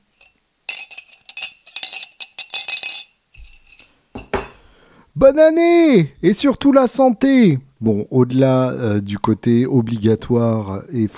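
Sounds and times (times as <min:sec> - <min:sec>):
spoon clinking against the inside of a mug: 0:00.2 - 0:04.6
speech: 0:05.2 - 0:11.1.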